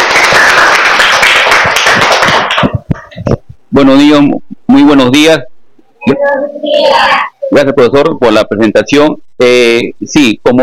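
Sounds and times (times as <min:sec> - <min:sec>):
children applauding: 0:00.0 - 0:02.8
speech: 0:03.7 - 0:10.6.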